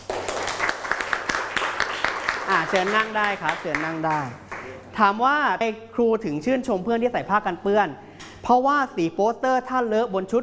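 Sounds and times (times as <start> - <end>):
soft scattered hand claps in a classroom for a student: 0.0 - 4.8
speech: 2.5 - 10.4.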